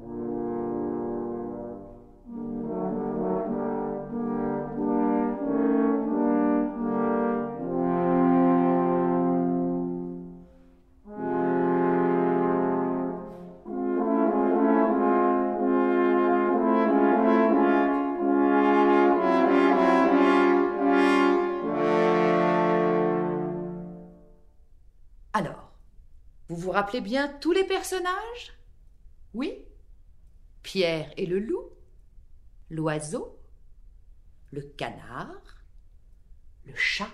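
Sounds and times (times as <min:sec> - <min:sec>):
three French horns playing a dark theme: 0:00.0 - 0:24.5
speech: 0:26.6 - 0:28.6, 0:29.4 - 0:29.6, 0:30.7 - 0:31.8, 0:32.7 - 0:33.4, 0:34.5 - 0:35.6, 0:36.7 - 0:37.1.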